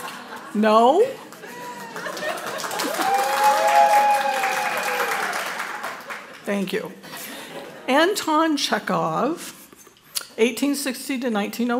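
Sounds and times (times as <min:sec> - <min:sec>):
laughter: 0:00.0 - 0:00.6, 0:01.2 - 0:03.2
speech: 0:00.5 - 0:01.3, 0:06.5 - 0:07.1, 0:07.9 - 0:09.6, 0:10.4 - 0:11.7
crowd applauding: 0:01.2 - 0:06.5
people whooping: 0:01.4 - 0:06.0.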